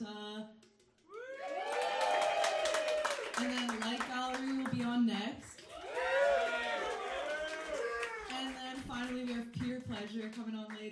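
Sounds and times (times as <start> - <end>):
audience clapping at a live music gig: 0.9 - 10.9
audience at a live music gig cheering and whooping: 1.1 - 3.4, 5.7 - 8.4.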